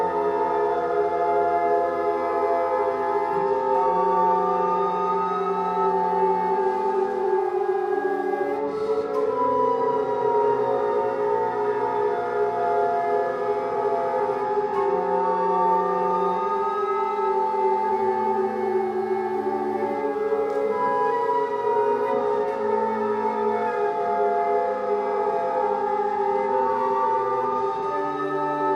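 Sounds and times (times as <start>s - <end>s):
noise flute: 0.0s - 28.7s.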